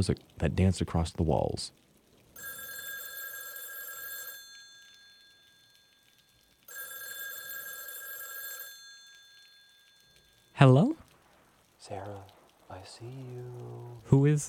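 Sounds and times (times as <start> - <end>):
speech: 0.0 - 2.5, 10.6 - 11.0, 11.9 - 14.4
faint hiss: 0.0 - 14.4
telephone ringing with bright buzzing electronic rings: 2.4 - 10.6.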